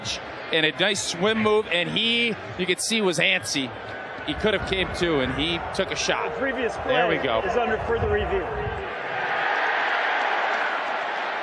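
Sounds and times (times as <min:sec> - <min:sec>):
speech: 0:00.0 - 0:09.0
Illinois stadium crowd cheering: 0:00.0 - 0:11.4.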